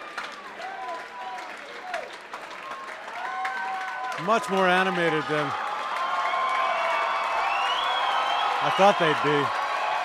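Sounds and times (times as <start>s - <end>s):
large concert crowd applauding: 0.0s - 10.0s
speech: 4.2s - 5.6s, 8.6s - 9.6s
shrill whistles from concert crowd: 7.3s - 9.2s.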